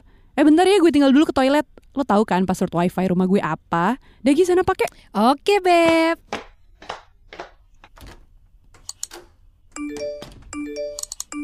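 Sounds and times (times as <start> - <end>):
speech: 0.4 - 7.0
phone notification sounds: 9.8 - 11.4.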